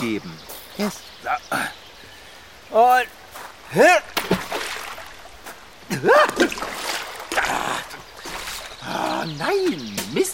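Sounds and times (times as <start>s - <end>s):
speech: 0.1s - 1.8s, 2.7s - 4.1s, 5.9s - 6.8s, 9.2s - 10.3s
water splashing from stepping into a stream: 3.2s - 9.6s.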